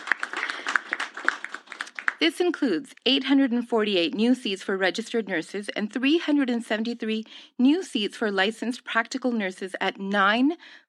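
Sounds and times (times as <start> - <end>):
crowd clapping: 0.0 - 2.4
speech: 2.2 - 10.8.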